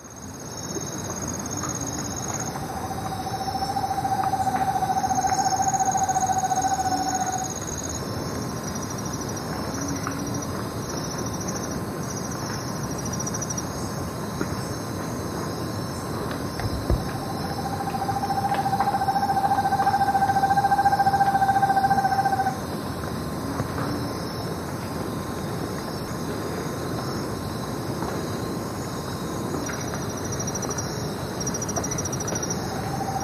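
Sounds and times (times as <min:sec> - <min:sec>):
insect noise: 0:00.0 - 0:33.2
Foothill Screech Owl hooting trill: 0:02.3 - 0:07.6, 0:17.1 - 0:22.6, 0:32.5 - 0:33.2.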